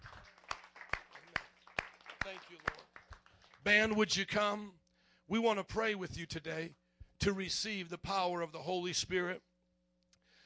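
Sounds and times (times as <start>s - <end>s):
audience clapping: 0.0s - 4.2s
speech: 2.3s - 3.0s, 3.6s - 9.5s.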